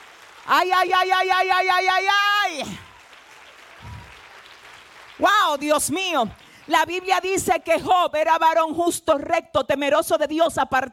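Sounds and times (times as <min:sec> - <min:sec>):
crowd applauding: 0:00.0 - 0:07.5
speech: 0:00.5 - 0:02.8, 0:05.2 - 0:10.9.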